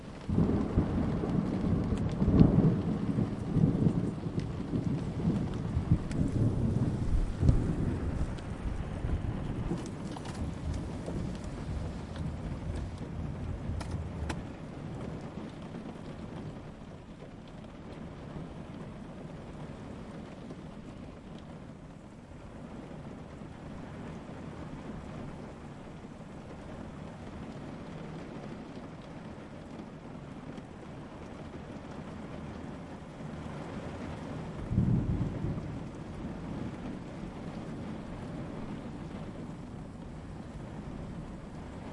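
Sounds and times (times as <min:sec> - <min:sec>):
thunder: 0:00.0 - 0:17.4, 0:33.3 - 0:41.9.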